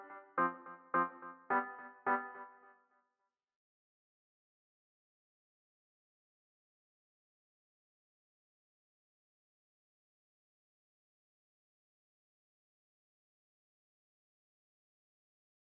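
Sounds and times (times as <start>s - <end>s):
piano music for an action RPG game: 0.0s - 2.7s.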